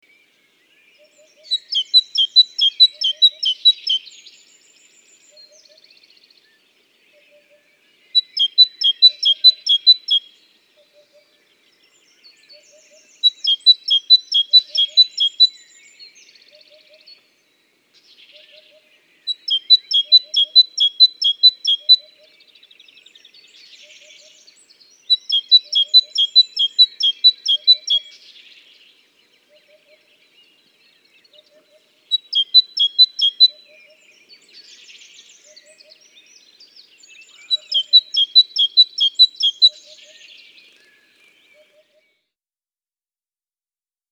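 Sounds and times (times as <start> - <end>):
Parus major calling: 1.5 - 4.1, 8.2 - 10.2, 12.9 - 15.6, 19.3 - 22.1, 24.0 - 28.3, 32.1 - 34.0, 34.6 - 40.2.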